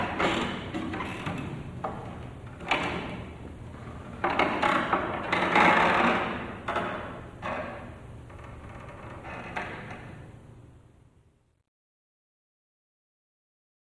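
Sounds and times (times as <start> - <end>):
wooden seat creaking: 0.0 - 10.2.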